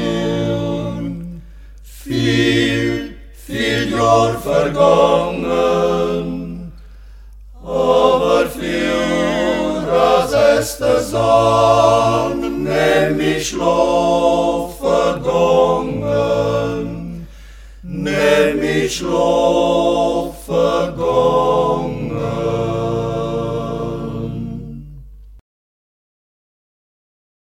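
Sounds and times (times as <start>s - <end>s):
octet singing in local dialect: 0.0s - 6.9s, 7.6s - 25.0s.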